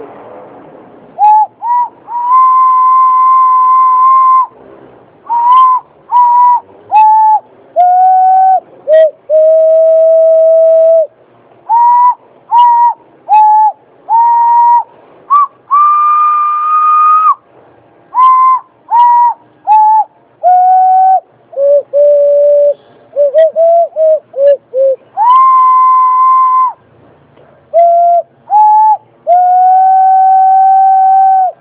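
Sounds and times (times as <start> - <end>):
hand whistling a theme: 1.2 - 4.5, 5.3 - 11.1, 11.7 - 17.4, 18.2 - 26.8, 27.7 - 31.5.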